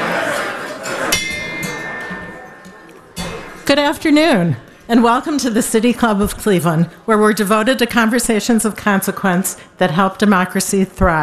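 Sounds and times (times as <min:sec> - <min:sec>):
gong being struck: 0:01.2 - 0:03.6
speech: 0:03.7 - 0:11.2.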